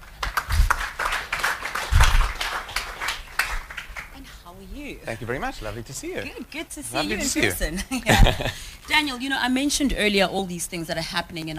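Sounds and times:
audience applause: 0:00.0 - 0:04.2
speech: 0:04.9 - 0:11.5
laughter: 0:07.8 - 0:08.6.

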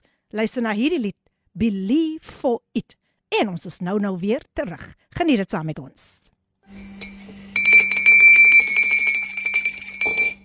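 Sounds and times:
speech: 0:00.3 - 0:07.0
spoon stirring in a cup: 0:06.8 - 0:10.4.

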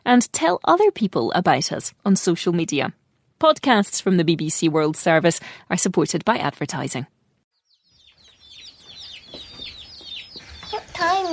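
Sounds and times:
speech: 0:00.1 - 0:07.2
chickens clucking and chirping: 0:08.1 - 0:11.2.

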